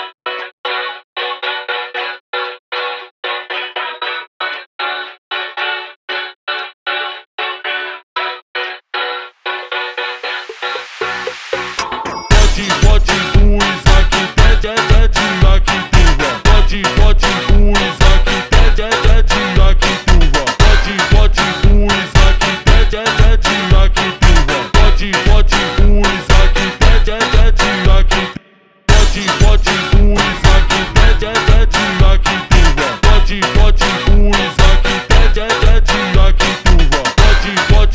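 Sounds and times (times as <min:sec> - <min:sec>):
slowed Christmas kids funk: 0:09.8 - 0:37.9.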